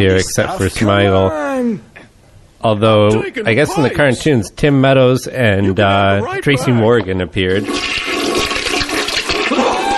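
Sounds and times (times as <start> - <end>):
speech: 0.0 - 1.9, 2.6 - 8.0
toilet flushing: 7.6 - 9.9.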